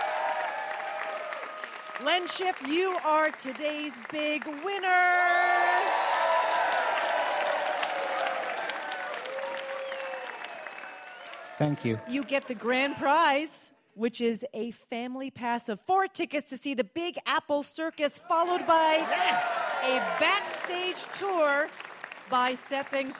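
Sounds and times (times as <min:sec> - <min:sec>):
audience applause: 0:00.0 - 0:12.9, 0:18.4 - 0:23.1
speech: 0:02.0 - 0:06.0, 0:11.6 - 0:23.1.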